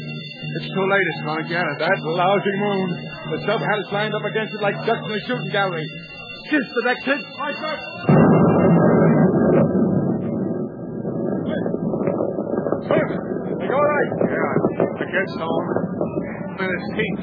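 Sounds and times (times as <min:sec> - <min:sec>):
speech: 0:00.5 - 0:08.4, 0:15.1 - 0:15.8, 0:16.6 - 0:17.2
depth bomb explosion: 0:08.0 - 0:17.2.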